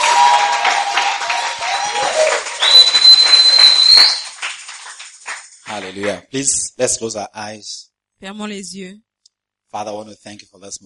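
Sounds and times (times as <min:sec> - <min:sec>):
audience clapping: 0:00.0 - 0:06.6
speech: 0:05.8 - 0:09.1, 0:09.7 - 0:10.8.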